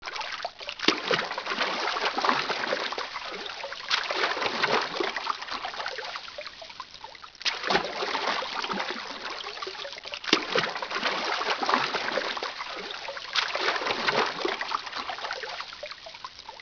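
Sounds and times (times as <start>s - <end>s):
water: 0.0s - 16.6s.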